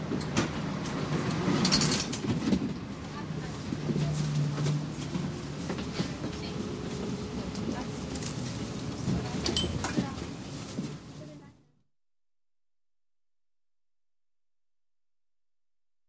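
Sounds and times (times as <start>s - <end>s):
passing tram heard from inside the car: 0.0s - 11.5s.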